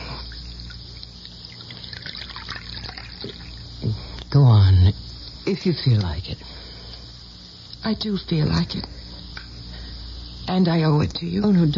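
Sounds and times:
coffee pouring into a cup: 0.4 - 3.7
speech: 4.4 - 6.6, 7.8 - 9.0, 10.5 - 11.7.

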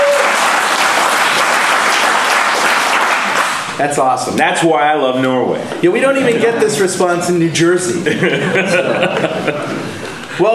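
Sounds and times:
audience applause: 0.0 - 3.8
speech: 3.8 - 10.5
laughter: 6.0 - 7.2, 7.9 - 10.5.

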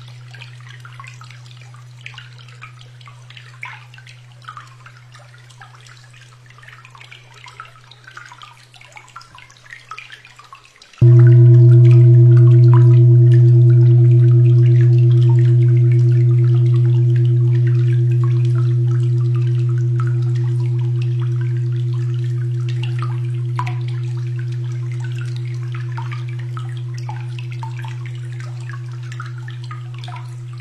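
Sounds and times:
loud 246.04 Hz tone: 11.0 - 30.6
quiet steady low hum: 11.0 - 30.6.

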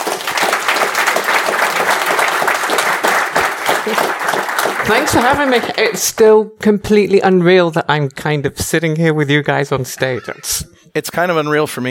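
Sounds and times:
audience applause welcoming a guest on stage at a programming conference talk: 0.0 - 6.2
speech: 3.9 - 4.2, 4.9 - 11.8.

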